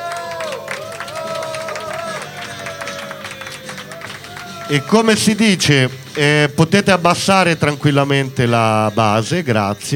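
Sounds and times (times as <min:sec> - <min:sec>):
audience applause for the band: 0:00.0 - 0:06.4
speech: 0:04.7 - 0:09.9.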